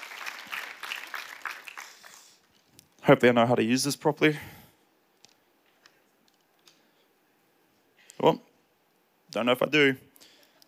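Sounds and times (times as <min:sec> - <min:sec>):
audience clapping: 0:00.0 - 0:02.5
speech: 0:03.1 - 0:04.6, 0:08.2 - 0:08.4, 0:09.3 - 0:10.1.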